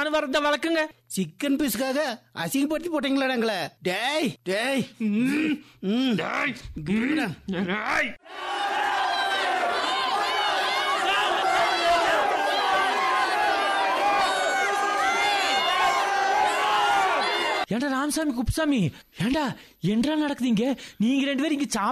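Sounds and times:
speech: 0:00.0 - 0:08.8, 0:17.7 - 0:21.9
brawling crowd shouting over a piece of chicken at a meal: 0:08.2 - 0:17.7.

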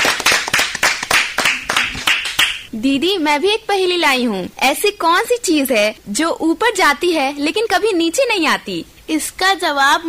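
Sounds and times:
small group clapping during a riddle game: 0:00.0 - 0:02.7
speech: 0:02.8 - 0:10.0.

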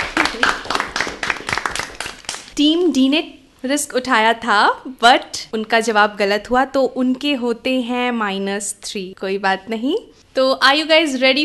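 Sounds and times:
audience clapping for quiz teams: 0:00.0 - 0:02.6
speech: 0:02.6 - 0:11.4.

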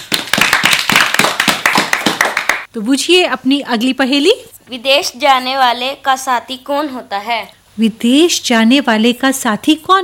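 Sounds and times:
hand clapping rewarding a correct answer in a riddle game: 0:00.0 - 0:02.7
speech: 0:02.8 - 0:10.0.

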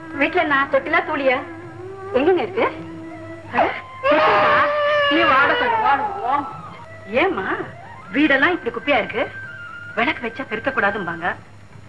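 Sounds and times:
speech: 0:00.2 - 0:02.9, 0:03.5 - 0:04.5, 0:05.1 - 0:09.4, 0:10.0 - 0:11.8
sleepy baby crying: 0:03.2 - 0:07.0.

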